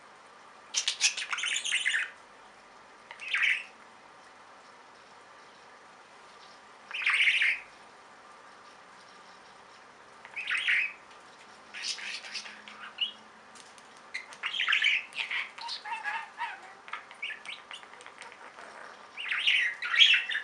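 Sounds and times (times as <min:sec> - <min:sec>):
budgerigar calls: 0:00.7 - 0:02.2, 0:03.1 - 0:03.8, 0:06.9 - 0:07.7, 0:10.3 - 0:11.0, 0:11.7 - 0:13.2, 0:14.1 - 0:20.4.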